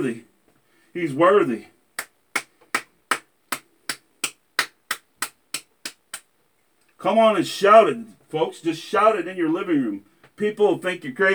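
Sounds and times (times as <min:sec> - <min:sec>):
speech: 0:00.0 - 0:00.3, 0:01.0 - 0:01.7, 0:07.0 - 0:11.3
audience hand clapping: 0:02.0 - 0:06.2.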